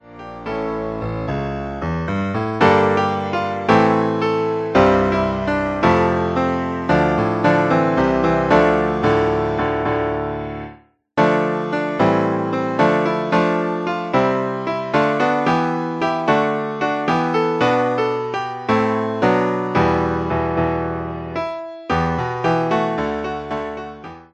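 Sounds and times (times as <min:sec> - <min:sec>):
accompaniment for Palm Sunday verse: 0:00.1 - 0:24.3.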